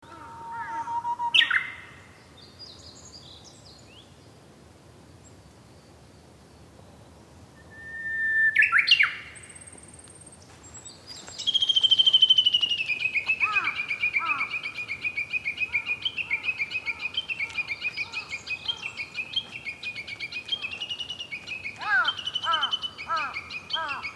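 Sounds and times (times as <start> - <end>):
Japanese bush warbler song: 0.9 - 1.8, 7.6 - 9.7, 11.1 - 24.1.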